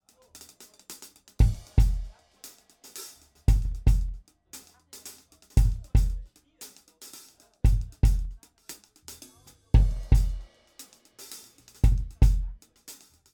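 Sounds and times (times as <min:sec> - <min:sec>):
Octa drum overheads: 0:00.0 - 0:13.3
kick drum: 0:01.4 - 0:02.1, 0:03.5 - 0:04.2, 0:05.6 - 0:06.2, 0:07.7 - 0:08.4, 0:09.8 - 0:10.5, 0:11.8 - 0:12.6.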